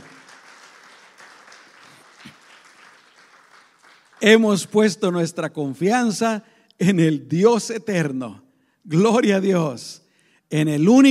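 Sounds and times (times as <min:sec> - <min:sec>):
audience applause: 0:00.0 - 0:04.5
speech: 0:04.2 - 0:11.0.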